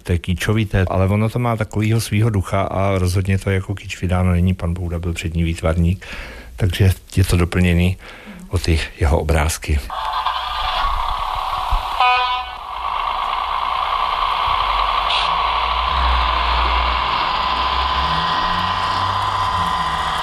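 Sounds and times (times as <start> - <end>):
speech: 0.0 - 10.3
train departing from station: 9.9 - 20.2.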